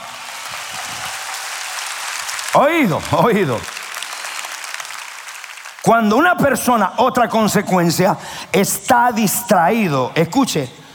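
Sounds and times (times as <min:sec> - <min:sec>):
audience applause: 0:00.0 - 0:06.1
speech: 0:02.5 - 0:03.7, 0:05.9 - 0:10.8.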